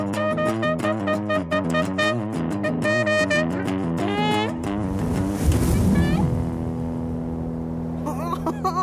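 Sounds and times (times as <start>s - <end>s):
music: 0.0s - 8.8s
splash of someone jumping into the Weißer See lake: 4.8s - 6.8s
laughter: 8.0s - 8.8s.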